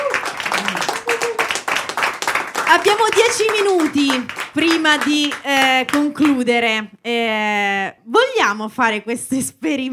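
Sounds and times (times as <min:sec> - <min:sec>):
applause for a choir: 0:00.0 - 0:06.4
speech: 0:02.8 - 0:09.9.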